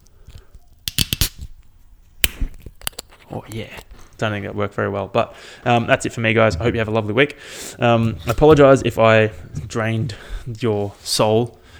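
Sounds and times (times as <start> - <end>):
soda water can cracking open: 0.2 - 4.3
speech: 3.4 - 11.6.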